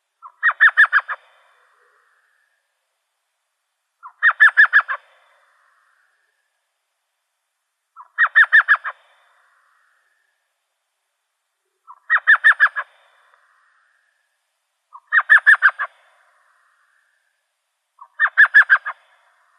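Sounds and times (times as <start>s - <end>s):
Elf Owl chattering call in Arizona: 0.2s - 2.2s, 4.0s - 5.1s, 8.0s - 9.0s, 11.8s - 13.0s, 14.9s - 15.9s, 18.0s - 19.1s.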